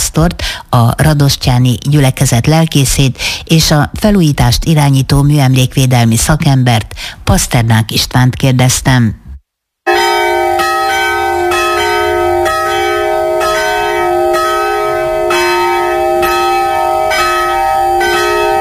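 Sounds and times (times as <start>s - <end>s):
speech: 0.1s - 9.2s
church bells ringing at noon: 9.9s - 18.5s.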